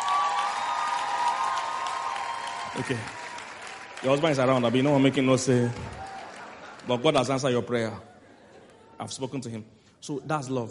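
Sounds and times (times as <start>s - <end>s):
audience clapping: 0.0s - 8.0s
speech: 2.8s - 3.2s, 4.0s - 6.0s, 6.8s - 8.1s, 9.0s - 10.6s.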